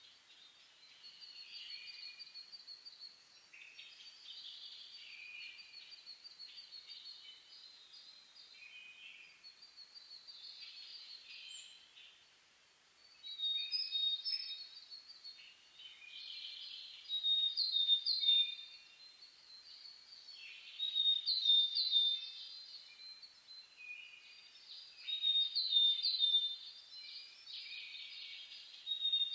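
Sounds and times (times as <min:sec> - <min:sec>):
dawn chorus of birds: 0:00.0 - 0:29.3
soft background hiss: 0:00.0 - 0:29.3.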